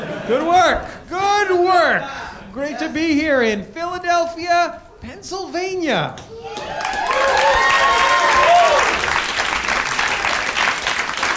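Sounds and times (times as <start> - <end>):
speech: 0.3 - 7.7
people cheering: 6.3 - 11.3
crowd applauding: 6.5 - 11.3.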